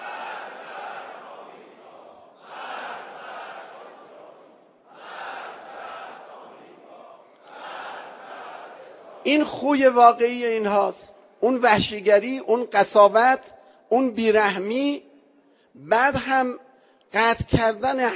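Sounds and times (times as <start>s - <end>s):
large crowd chanting political slogans: 0.0s - 9.6s
speech: 9.2s - 15.1s, 15.8s - 18.1s.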